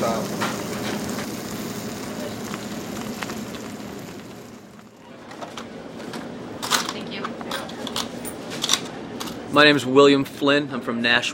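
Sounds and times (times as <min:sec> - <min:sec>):
turkey and pepperoni sandwich sizzling under a pressed grill lid: 0:00.0 - 0:05.0
speech: 0:09.6 - 0:11.3.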